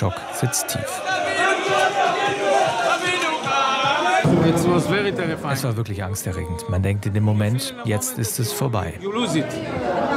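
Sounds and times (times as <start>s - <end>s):
speech: 0.0s - 3.1s, 4.3s - 10.1s
crowd cheering in greeting: 0.0s - 5.6s, 9.0s - 10.1s.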